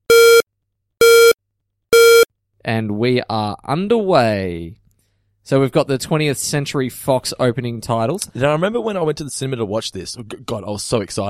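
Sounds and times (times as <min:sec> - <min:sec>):
loud flat buzzy electronic beeps: 0:00.0 - 0:00.4, 0:01.0 - 0:01.4, 0:02.0 - 0:02.3
speech: 0:02.7 - 0:04.8, 0:05.5 - 0:11.2.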